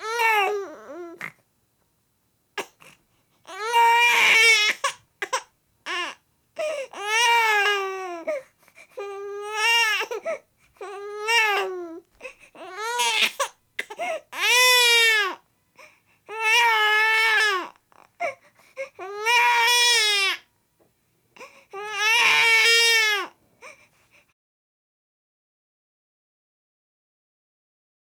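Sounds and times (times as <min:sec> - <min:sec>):
baby whining: 0:00.0 - 0:01.4, 0:03.5 - 0:15.4, 0:16.3 - 0:20.4, 0:21.4 - 0:23.8.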